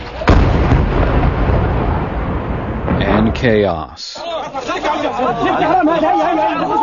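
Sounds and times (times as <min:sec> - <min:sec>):
explosion during an airstrike in the Gaza Strip: 0:00.0 - 0:04.0
speech: 0:03.4 - 0:06.8
laughter: 0:04.2 - 0:06.8.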